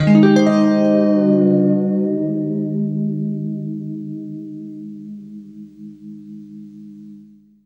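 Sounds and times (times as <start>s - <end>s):
guitar chords: 0.0s - 7.6s.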